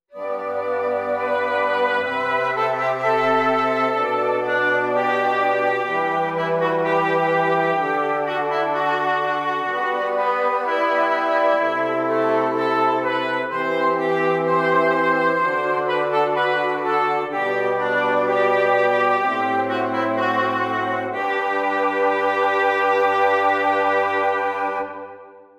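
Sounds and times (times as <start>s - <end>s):
contrapuntal music: 0.2s - 25.3s.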